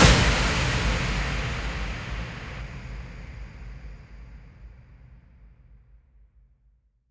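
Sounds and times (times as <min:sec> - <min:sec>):
impact sound effects: 0:00.0 - 0:04.5.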